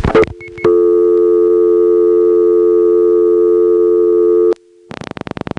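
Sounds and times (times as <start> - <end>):
telephone busy signal with no pitch variation: 0.1 - 4.9.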